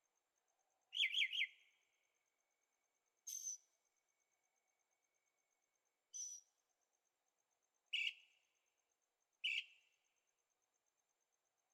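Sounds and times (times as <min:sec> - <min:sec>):
bird calls: 0:01.0 - 0:01.6, 0:08.0 - 0:08.2, 0:09.4 - 0:09.7.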